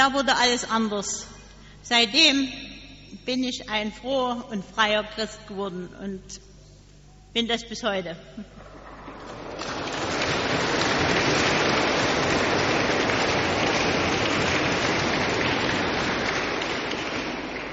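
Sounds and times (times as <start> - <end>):
speech: 0.0 - 6.5, 7.4 - 8.7
audience clapping: 8.7 - 17.7.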